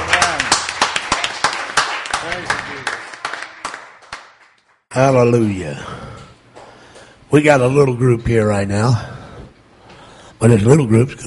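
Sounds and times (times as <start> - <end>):
crowd clapping: 0.0 - 4.9
speech: 5.0 - 6.0, 7.3 - 9.1, 10.4 - 11.2.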